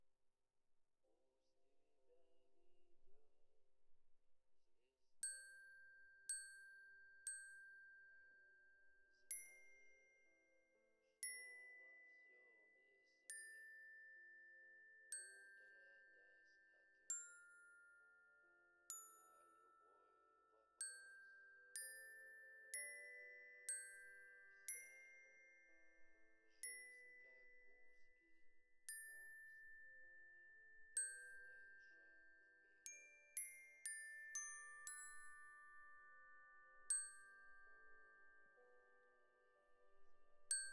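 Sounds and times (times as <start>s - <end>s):
glockenspiel: 5.2s - 40.7s.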